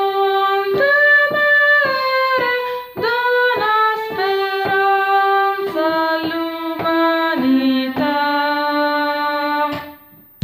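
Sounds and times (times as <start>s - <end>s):
contralto voices: 0.0s - 10.3s.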